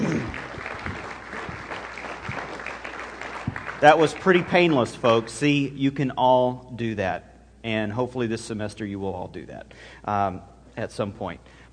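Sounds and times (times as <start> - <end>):
audience clapping: 0.0 - 5.3
speech: 3.8 - 11.7.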